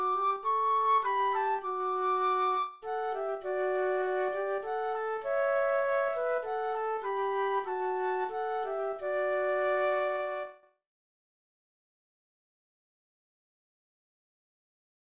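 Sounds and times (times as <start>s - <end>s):
flute duet: 0.0s - 10.7s.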